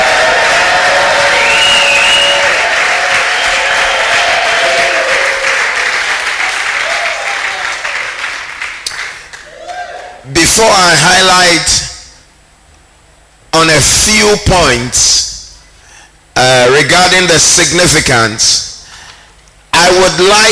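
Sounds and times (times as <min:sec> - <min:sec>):
audience shouting: 0:00.0 - 0:08.2, 0:09.5 - 0:10.2
audience clapping: 0:00.0 - 0:10.2
speech: 0:10.6 - 0:11.9, 0:13.5 - 0:15.3, 0:16.4 - 0:18.7, 0:19.8 - 0:20.5.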